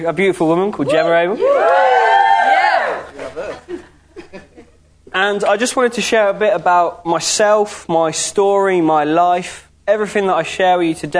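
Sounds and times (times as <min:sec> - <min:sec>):
speech: 0:00.0 - 0:02.0, 0:05.2 - 0:11.1
crowd cheering: 0:00.9 - 0:03.5
laughter: 0:02.9 - 0:04.9.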